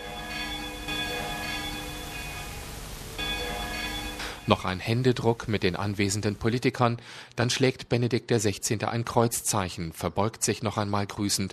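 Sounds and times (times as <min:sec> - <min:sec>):
church bells ringing: 0:00.0 - 0:06.2
speech: 0:04.5 - 0:11.5.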